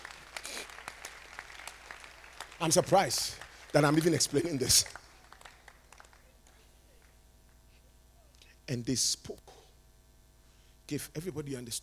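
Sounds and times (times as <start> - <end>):
crowd of people clapping together: 0.0 - 7.2
speech: 2.6 - 5.0, 8.7 - 9.5, 10.9 - 11.8.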